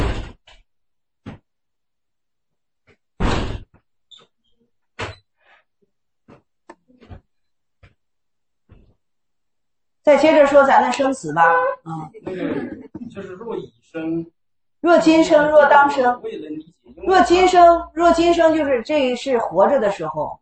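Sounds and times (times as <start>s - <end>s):
heavy thud: 3.2s - 3.7s
door shutting: 5.0s - 5.2s
speech: 10.0s - 20.4s
laughter: 12.1s - 13.7s.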